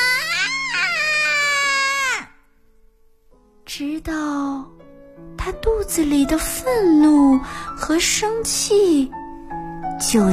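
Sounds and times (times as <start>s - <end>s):
long loud angry scream: 0.0s - 2.4s
speech: 3.8s - 9.2s, 10.0s - 10.3s.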